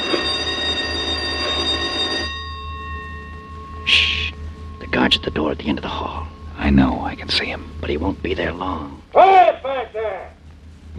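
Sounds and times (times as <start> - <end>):
prison no-talking bell ringing: 0.0 - 8.0
speech: 5.0 - 10.4.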